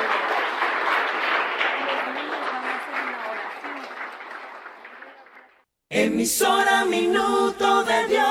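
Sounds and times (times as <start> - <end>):
audience applauding: 0.0 - 5.7
speech: 6.0 - 8.2.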